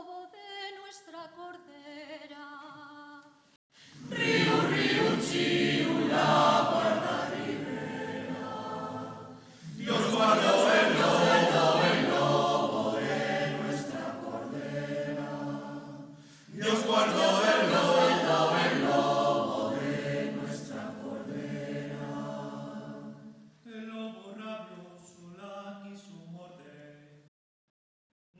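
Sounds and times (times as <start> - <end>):
polyphonic choir singing: 3.8 - 23.4.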